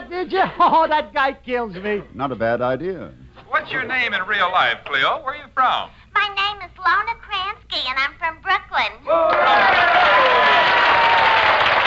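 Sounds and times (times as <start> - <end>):
speech: 0.2 - 10.7
voices whooping: 9.1 - 11.7
audience applause: 9.2 - 11.8.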